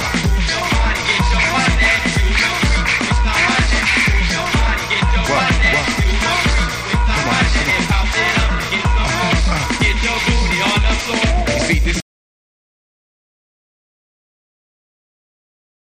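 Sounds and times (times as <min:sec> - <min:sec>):
dub music: 0:00.0 - 0:12.0.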